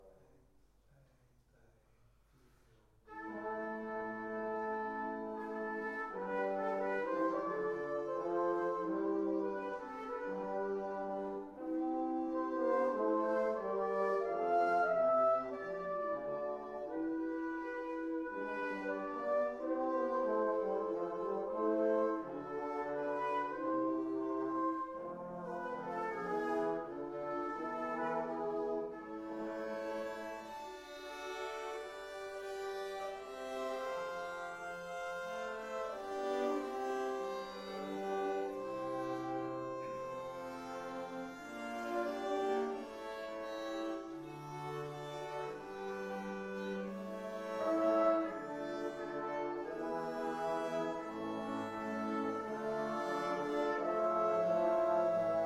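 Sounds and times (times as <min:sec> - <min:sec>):
instrument from a church: 0:00.0 - 0:55.4.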